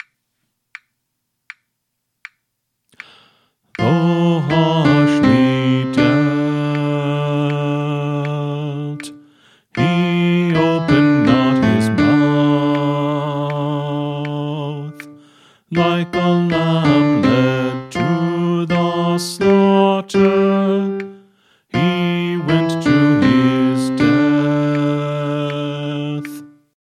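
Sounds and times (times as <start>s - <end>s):
choir singing practice track: 3.8s - 9.2s, 9.8s - 15.0s, 15.7s - 21.1s, 21.8s - 26.5s.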